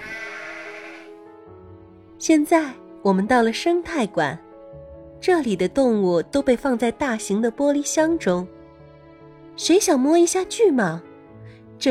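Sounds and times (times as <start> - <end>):
young goat bleating: 0.0 - 1.1
speech: 2.2 - 4.4, 5.2 - 8.6, 9.6 - 11.1.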